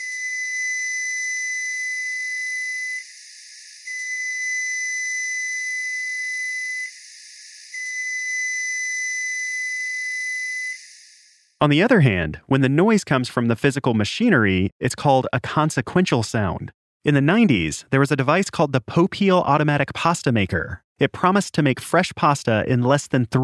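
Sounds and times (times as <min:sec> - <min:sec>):
newer model Frigidaire microwave oven long beeps: 0:00.0 - 0:03.0, 0:03.9 - 0:06.9, 0:07.8 - 0:10.9
speech: 0:11.6 - 0:23.4.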